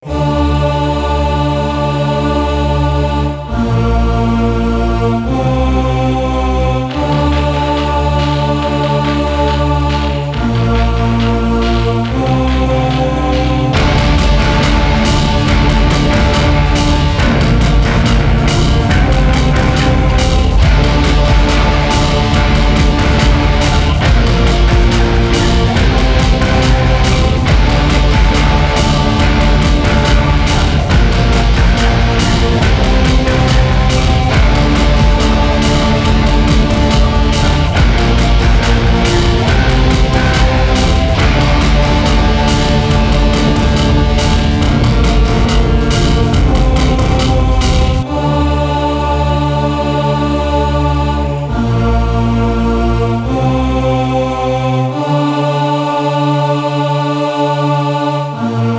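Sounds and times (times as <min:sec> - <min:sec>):
industrial music: 0:00.0 - 0:58.7.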